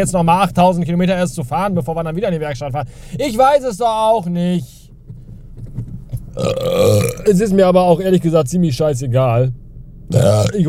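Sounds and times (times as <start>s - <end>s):
speech: 0.0s - 4.8s, 6.4s - 10.6s
long loud burp after eating chicken nuggets: 6.4s - 7.3s, 10.1s - 10.6s.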